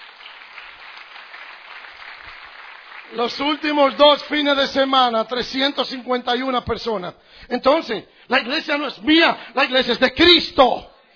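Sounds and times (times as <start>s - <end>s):
audience applause: 0.0s - 4.2s
speech: 3.1s - 10.9s.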